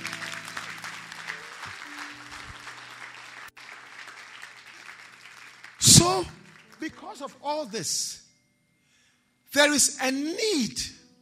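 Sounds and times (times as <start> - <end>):
audience applause: 0.0 - 7.3
speech: 6.0 - 8.2, 9.5 - 11.0.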